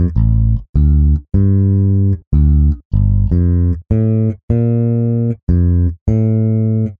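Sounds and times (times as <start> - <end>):
bass: 0.0 - 6.9.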